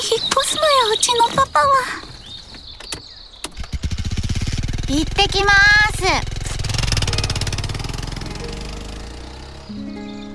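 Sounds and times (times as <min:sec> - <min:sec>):
speech: 0:00.0 - 0:02.1, 0:04.9 - 0:06.4
sharp clicks of a moped engine starting: 0:00.2 - 0:03.9
moped engine chugging: 0:03.6 - 0:10.3.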